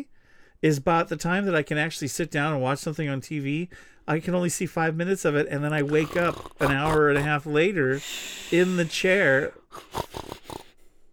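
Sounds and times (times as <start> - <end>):
speech: 0.0 - 10.5
person imitating snoring: 5.8 - 10.8.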